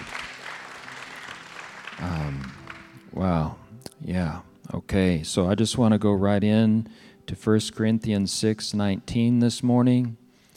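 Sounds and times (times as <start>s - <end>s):
audience hand clapping: 0.0s - 3.1s
speech: 3.2s - 10.2s.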